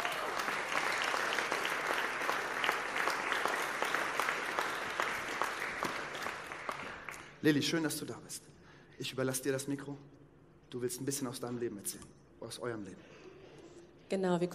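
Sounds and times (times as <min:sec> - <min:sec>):
warm audience applause: 0:00.0 - 0:07.4
speech: 0:07.4 - 0:13.2, 0:14.1 - 0:14.5.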